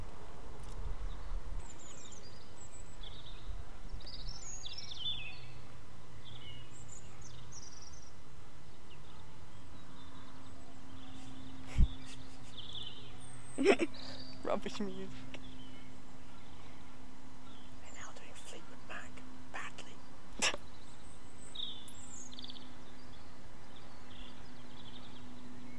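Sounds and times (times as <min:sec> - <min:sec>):
birds singing: 0:00.0 - 0:25.7
speech: 0:13.6 - 0:15.4.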